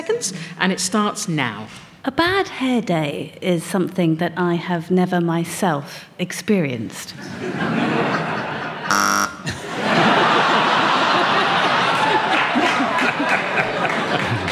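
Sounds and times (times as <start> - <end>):
speech: 0.1 - 8.2
sustained audience laughter: 7.2 - 14.5
game show buzzer: 8.9 - 9.6.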